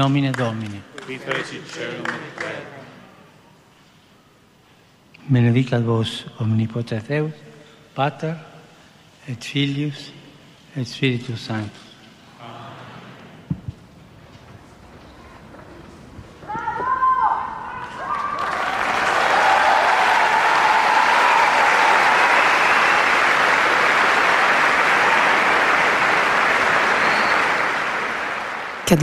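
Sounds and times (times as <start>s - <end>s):
speech: 0.0s - 2.8s, 5.2s - 8.5s, 9.3s - 10.2s, 10.8s - 11.8s
large crowd applause at papal audience: 17.4s - 29.0s.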